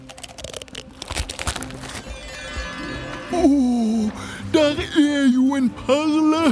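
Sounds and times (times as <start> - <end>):
shells being cracked open: 0.0 - 2.3
speech: 3.3 - 6.5.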